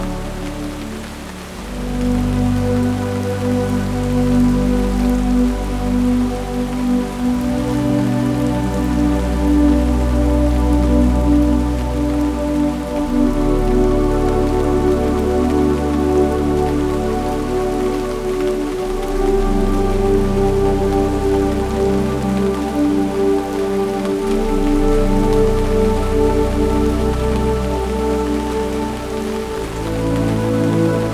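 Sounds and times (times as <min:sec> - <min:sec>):
quiet rain: 0:00.0 - 0:31.1.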